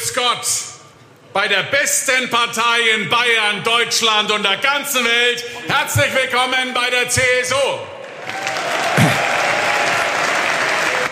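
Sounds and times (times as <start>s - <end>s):
speech: 0.2s - 8.4s
frenetic applause: 8.0s - 11.1s.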